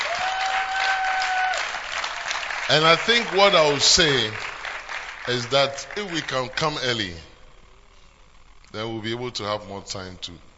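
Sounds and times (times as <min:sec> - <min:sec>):
audience clapping hands: 0:00.0 - 0:07.2
speech: 0:02.7 - 0:04.5, 0:05.3 - 0:07.3, 0:08.7 - 0:10.4.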